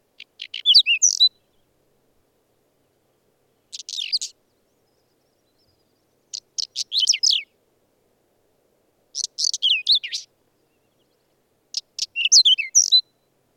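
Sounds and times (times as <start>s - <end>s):
whinchat singing in the mountains: 0.2s - 1.7s, 3.5s - 7.5s, 9.2s - 13.4s.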